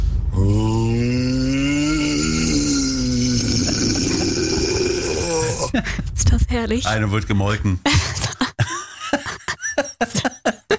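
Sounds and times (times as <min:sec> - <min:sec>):
voice imitating a deep growl: 0:00.3 - 0:05.8
laughter: 0:03.6 - 0:06.1, 0:07.9 - 0:10.7
speech: 0:06.3 - 0:08.1.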